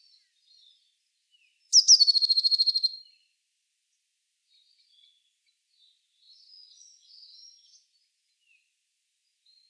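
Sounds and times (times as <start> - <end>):
Eurasian blue tit (Cyanistes caeruleus) giving rapid high buzzy trills: 1.7 - 2.9.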